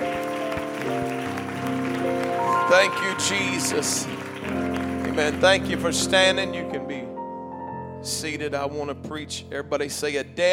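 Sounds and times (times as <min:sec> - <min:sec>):
audience clapping hands: 0:00.0 - 0:06.8
speech: 0:02.7 - 0:04.2, 0:05.2 - 0:06.9, 0:08.0 - 0:10.5.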